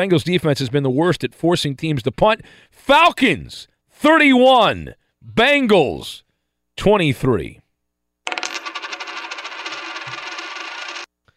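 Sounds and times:
speech: 0.0s - 6.2s, 6.8s - 7.6s
penny being shaken: 8.3s - 11.1s
penny clinking as it drops: 8.3s - 11.1s.

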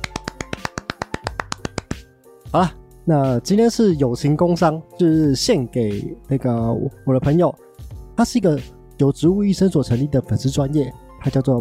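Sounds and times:
hand claps: 0.0s - 2.2s
speech: 2.5s - 11.5s.

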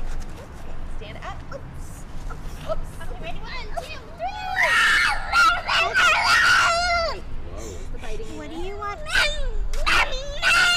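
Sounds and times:
toddler screaming in a tantrum: 4.2s - 7.2s, 9.0s - 10.7s.

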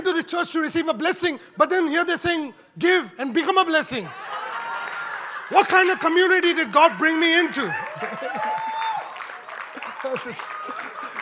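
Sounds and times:
speech: 0.3s - 4.3s, 5.5s - 8.4s, 10.0s - 10.8s
laughter: 4.1s - 11.2s
audience clapping: 4.4s - 11.2s.

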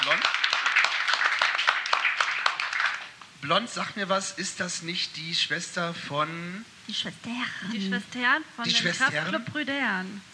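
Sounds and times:
live audience applause: 0.0s - 3.2s
speech: 3.4s - 10.3s.

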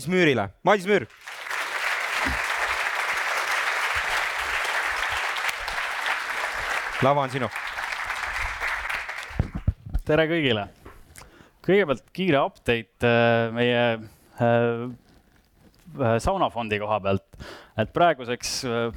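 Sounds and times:
speech: 0.0s - 1.3s, 7.0s - 7.7s, 10.1s - 10.8s, 11.7s - 15.0s, 15.9s - 18.9s
audience applause: 1.1s - 9.7s.

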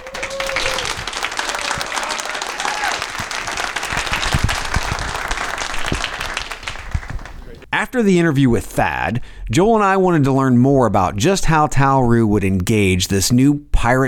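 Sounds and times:
applause: 0.0s - 7.6s
speech: 7.9s - 14.0s.

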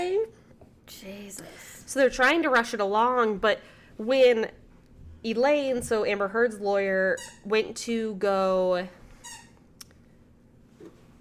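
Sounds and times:
speech: 1.0s - 4.6s, 5.2s - 9.0s
squeaky toy squeaking: 7.2s - 7.5s.

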